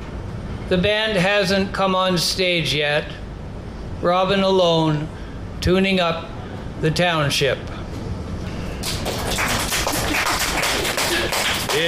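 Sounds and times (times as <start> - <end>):
speech: 0.7 - 3.2, 4.0 - 7.7
audience applause: 8.8 - 11.8.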